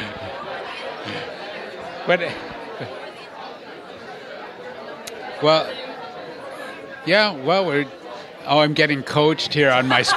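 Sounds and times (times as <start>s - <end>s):
laughter: 0.0s - 3.6s, 9.6s - 10.1s
murmur of overlapping voices from a gathering crowd: 0.0s - 10.1s
speech: 2.0s - 3.0s, 5.4s - 5.8s, 7.0s - 10.1s.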